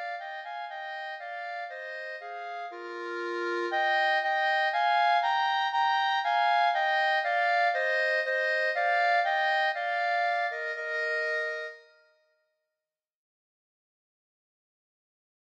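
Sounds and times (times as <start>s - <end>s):
flute duet: 0.0s - 11.8s.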